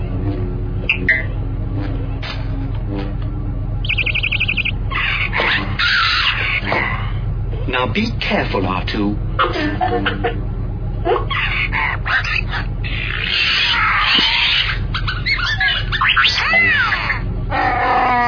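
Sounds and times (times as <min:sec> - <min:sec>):
steady low hum: 0:00.0 - 0:18.2
Wookiee roaring: 0:04.9 - 0:07.2, 0:11.4 - 0:14.8, 0:16.4 - 0:18.2
speech: 0:07.8 - 0:11.8
laughter: 0:09.4 - 0:11.4.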